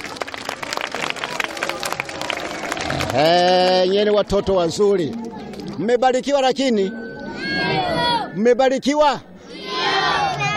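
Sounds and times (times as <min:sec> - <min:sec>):
congregation of children clapping at a church gathering: 0:00.0 - 0:06.8
crowd noise: 0:00.0 - 0:10.5
speech: 0:03.1 - 0:05.2, 0:05.8 - 0:07.0, 0:07.6 - 0:09.3.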